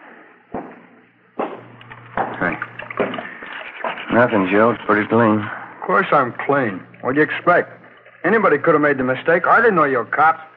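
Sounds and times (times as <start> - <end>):
water running from a tap: 1.8 - 8.9
speech: 2.4 - 2.7, 4.2 - 10.5.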